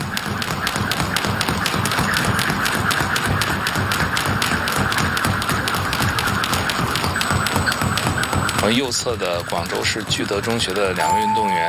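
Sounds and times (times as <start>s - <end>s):
skipping ropes slapping the floor in a rope-skipping competition race: 0.0s - 11.0s
noise: 7.2s - 11.6s
speech: 8.7s - 11.6s.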